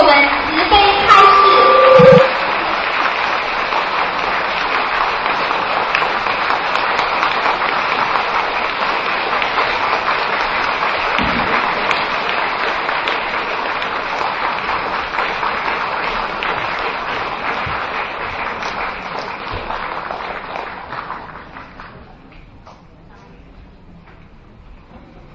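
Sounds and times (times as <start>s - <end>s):
audience applause: 0.1s - 22.3s.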